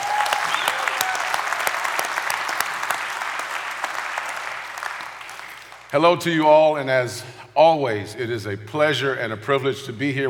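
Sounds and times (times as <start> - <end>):
audience applause: 0.0 - 5.9
speech: 5.9 - 10.2.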